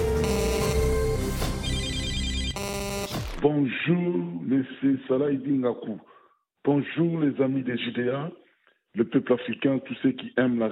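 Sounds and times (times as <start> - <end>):
answering machine beep: 0.0 - 3.4
speech: 3.4 - 8.4, 9.0 - 10.6.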